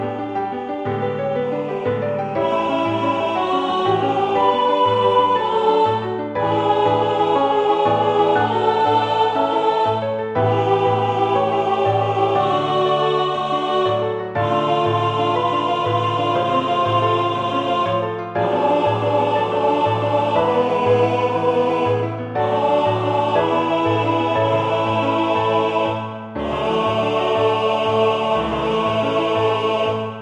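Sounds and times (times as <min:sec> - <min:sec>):
alternate choral piece: 0:00.0 - 0:30.2.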